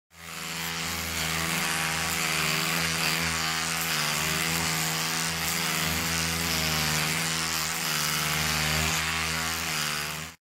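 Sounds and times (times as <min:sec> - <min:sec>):
electric toothbrush: 0:00.1 - 0:10.4.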